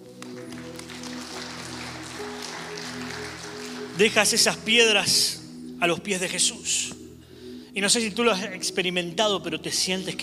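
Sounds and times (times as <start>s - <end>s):
audience applause: 0.0s - 4.6s
speech: 4.0s - 7.0s, 7.8s - 10.2s.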